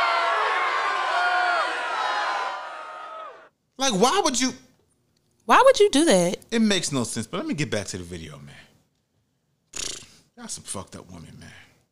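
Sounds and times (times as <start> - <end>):
crowd booing: 0.0 - 3.5
speech: 3.8 - 4.6, 5.5 - 8.6, 10.4 - 11.6.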